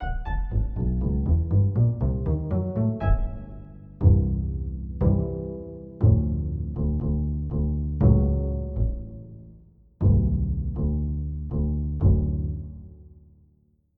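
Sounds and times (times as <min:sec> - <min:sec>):
pizzicato octave bass: 0:00.0 - 0:13.4.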